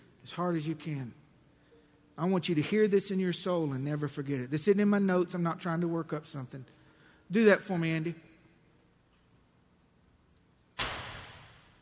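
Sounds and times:
speech: 0.3 - 1.2, 2.2 - 8.2
door slamming: 10.8 - 11.8.

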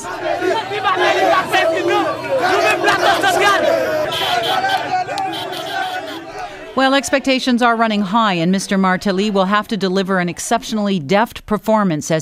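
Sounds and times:
crowd of followers cheering: 0.0 - 9.4
speech: 6.8 - 12.2.

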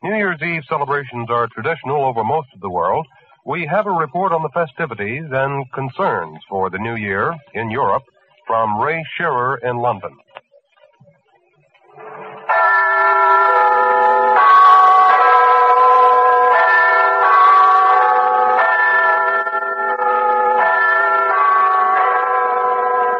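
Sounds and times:
speech: 0.1 - 10.2
Big Ben bells chiming a slow melody in London: 11.9 - 23.1.

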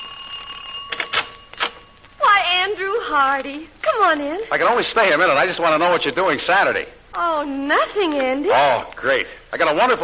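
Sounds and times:
doorbell ringing: 0.0 - 2.0
speech: 3.1 - 10.0.

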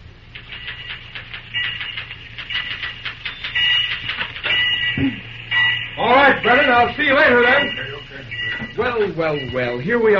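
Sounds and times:
typewriter keys clacking: 0.3 - 4.9
speech: 5.0 - 5.2, 6.0 - 7.9, 8.8 - 10.1.

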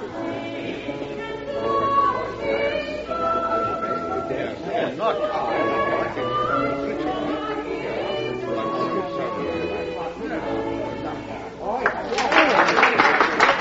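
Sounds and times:
woman singing: 0.0 - 11.8
audience applause after a singing performance: 11.8 - 13.5.

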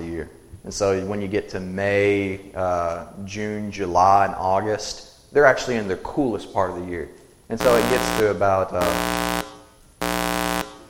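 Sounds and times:
speech: 0.2 - 9.4
loud alarm-like horn blast: 7.6 - 10.8.

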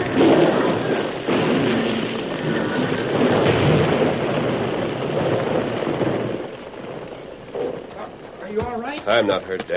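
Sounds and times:
mine blast explosion: 0.0 - 8.6
rock collapsing: 0.0 - 9.7
speech: 9.2 - 9.7.

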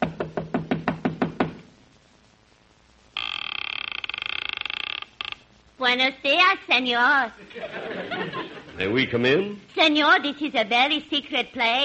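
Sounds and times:
knocking on a door: 0.0 - 1.7
speech: 5.8 - 11.8
laughter: 7.4 - 9.0.

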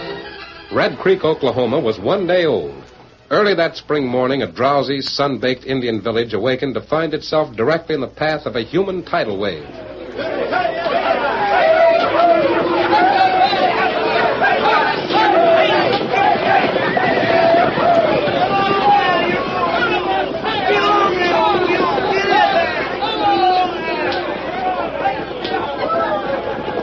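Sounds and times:
speech: 0.8 - 10.4
large excited crowd yelling and shouting: 9.8 - 26.8.

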